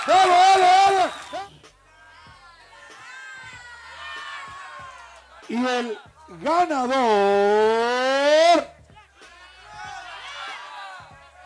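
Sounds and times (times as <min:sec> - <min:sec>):
audience applause: 0:00.0 - 0:01.6
audience cheering: 0:00.0 - 0:06.8, 0:09.1 - 0:11.4
speech: 0:05.5 - 0:08.7.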